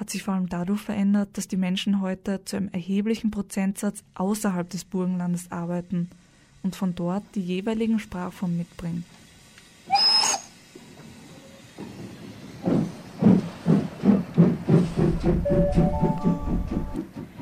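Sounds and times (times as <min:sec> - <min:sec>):
speech: 0:00.1 - 0:09.2
train rhythmic low thumps with hiss on platform 9 at Vienna Südbahnhof: 0:08.3 - 0:17.4
brief whistle-like tone at Vienna Südbahnhof: 0:09.9 - 0:10.6, 0:15.4 - 0:17.0.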